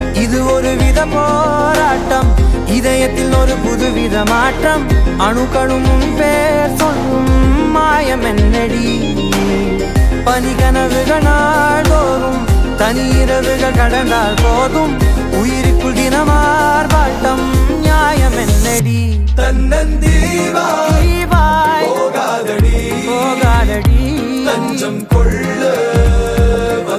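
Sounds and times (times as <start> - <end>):
background music ringtone: 0.0 - 26.9.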